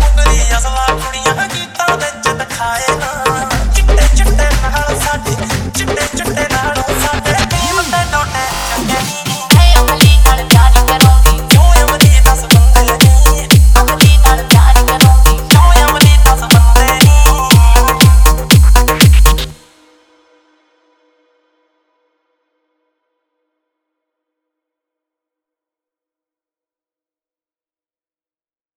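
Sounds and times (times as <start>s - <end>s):
remix song: 0.0s - 19.7s.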